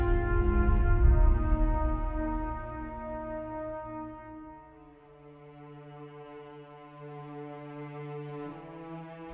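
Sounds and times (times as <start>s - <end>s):
world music: 0.0s - 5.4s.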